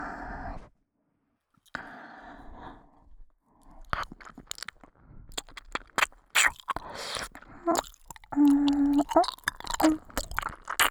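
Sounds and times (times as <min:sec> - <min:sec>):
ASMR ear licking in the right ear: 0:03.9 - 0:10.8.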